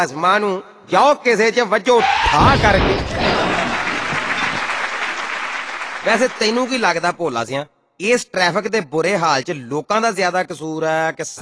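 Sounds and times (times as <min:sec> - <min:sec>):
speech: 0:00.0 - 0:03.2, 0:06.0 - 0:11.4
audience clapping: 0:02.7 - 0:07.2.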